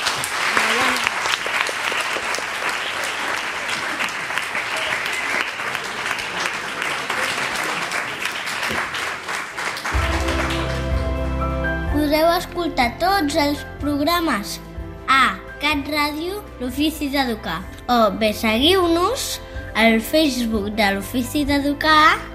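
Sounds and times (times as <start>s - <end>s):
audience applause: 0.0s - 11.5s
musical tone: 9.9s - 19.1s
speech: 12.6s - 22.3s.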